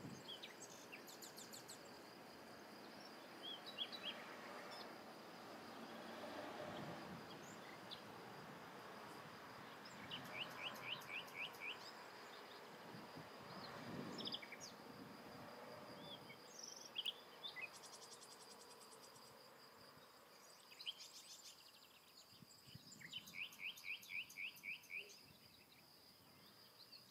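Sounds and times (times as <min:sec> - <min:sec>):
birds: 0:00.0 - 0:15.1, 0:15.9 - 0:27.0
cars: 0:03.2 - 0:12.8.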